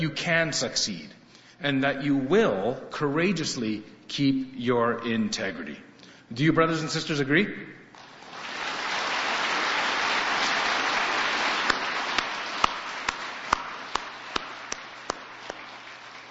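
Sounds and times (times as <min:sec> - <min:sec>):
speech: 0:00.0 - 0:07.8
audience applause: 0:08.0 - 0:16.2.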